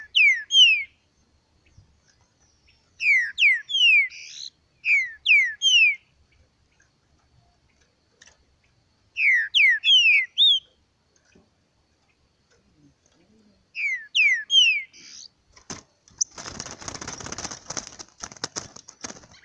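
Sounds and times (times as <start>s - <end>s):
green-winged saltator song of downslurred whistled notes: 0.0s - 1.0s, 1.6s - 6.1s, 9.1s - 10.8s, 13.7s - 15.4s.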